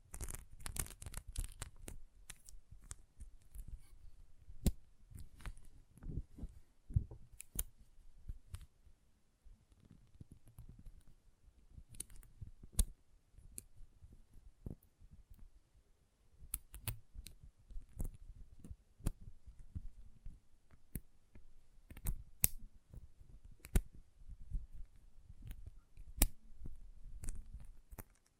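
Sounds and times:
sharp bright magnetic clicks and snaps: 0.0 - 3.7, 4.6 - 6.1, 6.9 - 8.7, 11.8 - 13.8, 16.4 - 20.0, 20.7 - 28.3.

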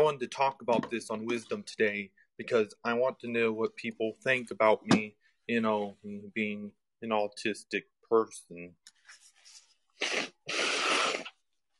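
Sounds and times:
speech: 0.0 - 9.0
sniff: 9.3 - 11.4
person blowing nose into a microphone: 9.9 - 11.5.

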